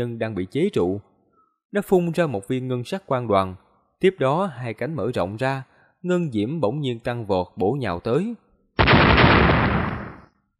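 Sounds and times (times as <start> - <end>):
speech: 0.0 - 1.1, 1.7 - 8.4
heavy explosive blast: 8.8 - 10.3.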